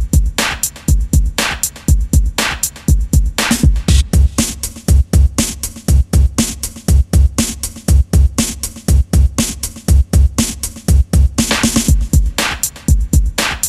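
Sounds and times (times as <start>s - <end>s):
rock RnB music: 0.0s - 13.6s.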